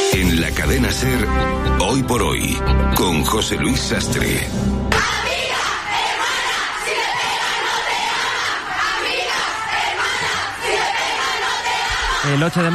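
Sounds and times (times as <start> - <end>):
speech: 0.2 - 5.3, 12.3 - 12.7
protest crowd chanting in Bogotá: 4.9 - 12.7.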